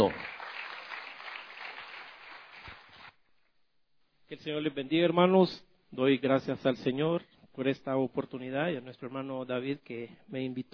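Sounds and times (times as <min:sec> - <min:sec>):
speech: 0:00.0 - 0:00.4, 0:04.3 - 0:10.7
audience applause: 0:00.0 - 0:03.2.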